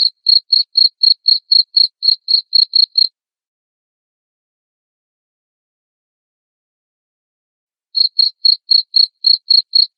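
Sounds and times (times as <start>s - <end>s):
cricket chirping: 0.0s - 3.1s, 8.0s - 9.9s.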